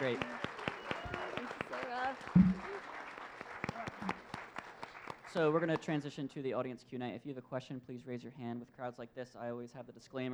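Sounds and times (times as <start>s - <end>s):
audience applause: 0.0s - 5.8s
speech: 5.4s - 10.3s.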